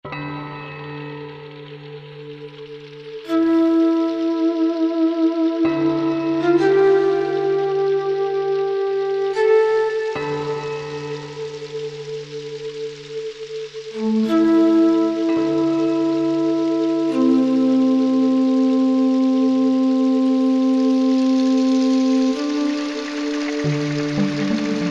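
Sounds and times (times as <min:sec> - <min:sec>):
Korg MSC-10S ethnic synth music: 0:00.1 - 0:24.8.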